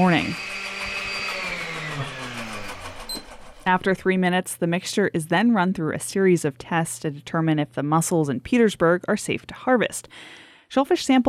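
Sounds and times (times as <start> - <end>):
speech: 0.0 - 0.5, 3.7 - 11.2
blender motor whirring blending mussels for shellfish safety testing: 0.0 - 3.9.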